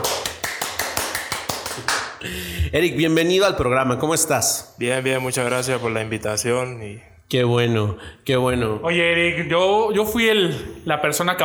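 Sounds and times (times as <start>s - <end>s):
audience applause: 0.0s - 2.2s
speech: 1.8s - 11.4s.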